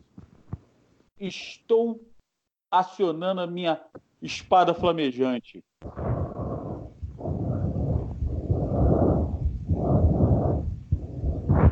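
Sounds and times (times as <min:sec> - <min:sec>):
speech: 0:01.2 - 0:02.1, 0:02.7 - 0:06.0
deep heavy breathing: 0:05.8 - 0:11.6.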